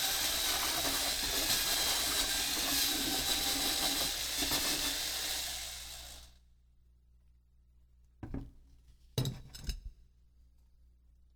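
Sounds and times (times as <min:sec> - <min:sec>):
mixer drill running: 0:00.0 - 0:06.3.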